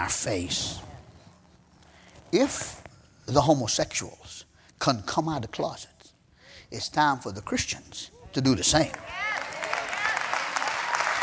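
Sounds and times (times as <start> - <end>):
speech: 0.0 - 0.9, 2.3 - 5.9, 6.7 - 9.4
audience applause: 8.8 - 11.2.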